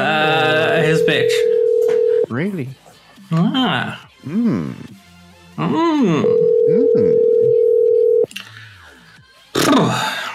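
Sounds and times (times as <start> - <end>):
quieter telephone line noises: 0.8 - 2.3, 6.2 - 8.3
telephone dial tone: 1.1 - 2.2, 6.4 - 8.3
speech: 2.4 - 4.9, 5.6 - 7.3, 9.7 - 10.1.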